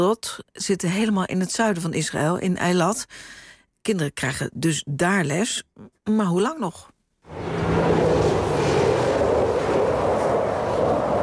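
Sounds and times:
speech: 0.0s - 8.0s
fighter jets flying overhead toward Gaza: 7.3s - 11.2s.

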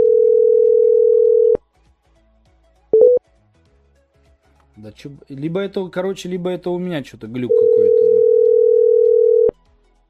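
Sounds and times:
telephone call tone: 0.0s - 1.6s, 3.0s - 3.2s, 7.5s - 9.5s
speech: 4.8s - 8.0s.

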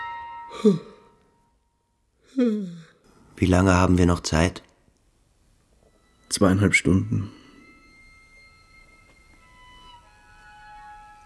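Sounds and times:
speech: 0.5s - 0.9s, 2.4s - 2.8s, 3.4s - 4.7s, 6.3s - 7.4s
person yawning: 0.5s - 1.2s, 2.3s - 3.0s.

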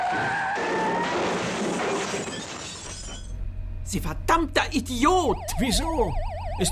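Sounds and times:
car bumping into something with minor bodywork damage: 0.0s - 3.4s
speech: 3.9s - 6.7s.

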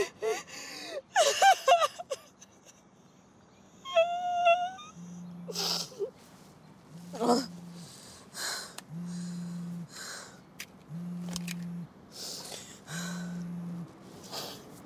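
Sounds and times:
woman crying at the wheel of a car: 0.0s - 2.8s, 3.9s - 6.1s
low buzzing pulses: 5.0s - 5.7s, 6.9s - 10.1s, 10.8s - 11.9s, 12.9s - 14.0s.

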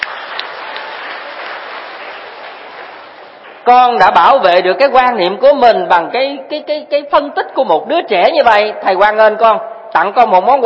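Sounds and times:
audience applause at a Buddhist teacher's dharma talk: 0.0s - 3.7s
speech: 3.7s - 10.6s.

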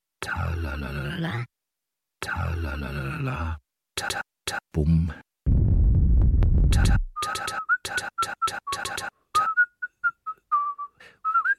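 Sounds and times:
speech: 0.3s - 1.5s, 2.2s - 5.2s, 6.7s - 9.2s
low rumbling noise: 5.5s - 7.0s
person whistling a tune: 7.2s - 11.5s.

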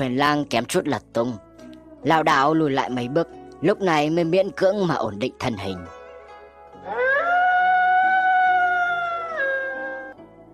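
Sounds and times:
speech: 0.0s - 6.0s
wolf-like beast howling in pain: 6.8s - 10.2s.

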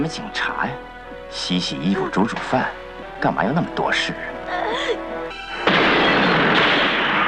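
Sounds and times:
speech: 0.0s - 5.0s
gas explosion caused by gas left turned on: 5.6s - 7.2s.

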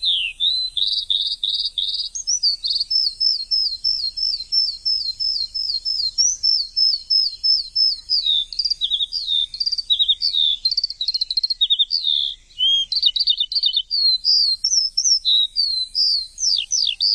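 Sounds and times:
bird song with fast high chattering trill: 0.0s - 17.1s.

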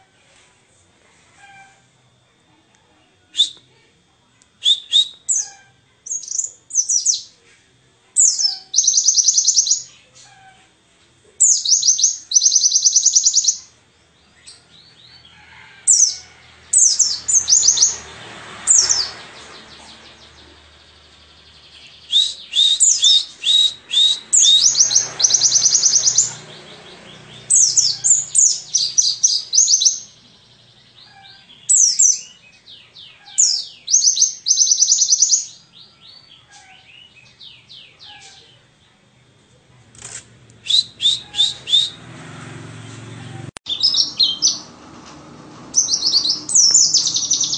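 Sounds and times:
white-eye singing: 4.6s - 7.4s, 8.2s - 10.6s, 11.4s - 13.7s, 14.3s - 38.6s, 40.6s - 42.0s, 43.7s - 44.8s, 45.7s - 47.5s.

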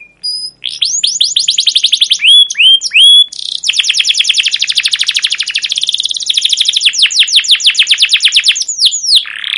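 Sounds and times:
captive canary chirping song: 0.0s - 9.5s.

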